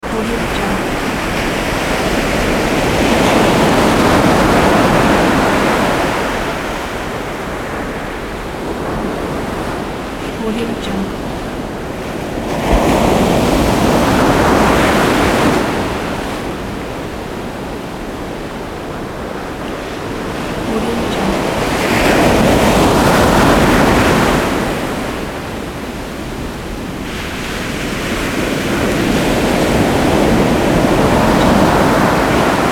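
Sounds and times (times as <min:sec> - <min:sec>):
ocean waves: 0:00.0 - 0:32.6.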